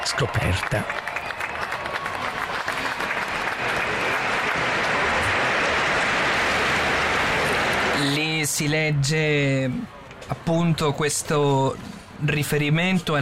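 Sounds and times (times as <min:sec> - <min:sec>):
large crowd applause at plaque unveiling: 0:00.0 - 0:08.5
speech: 0:00.1 - 0:01.1, 0:08.0 - 0:13.2.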